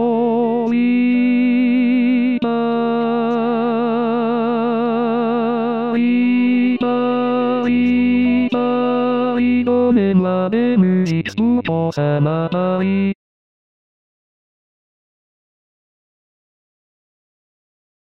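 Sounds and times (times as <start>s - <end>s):
tenor singing: 0.0s - 13.2s.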